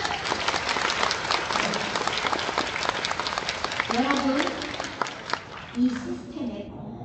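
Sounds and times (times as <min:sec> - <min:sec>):
audience applause: 0:00.0 - 0:06.2
speech: 0:05.8 - 0:06.6.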